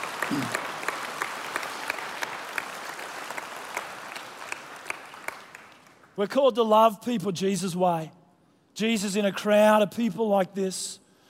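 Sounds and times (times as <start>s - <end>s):
audience applause: 0.0s - 6.2s
speech: 0.3s - 0.6s, 6.2s - 8.2s, 8.8s - 11.0s.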